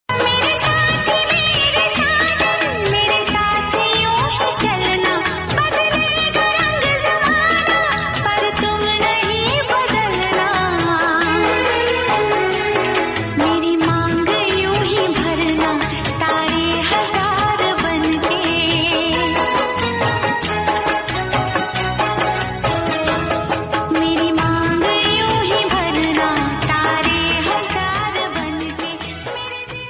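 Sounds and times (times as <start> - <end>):
romantic Hindi song: 0.1 - 29.8.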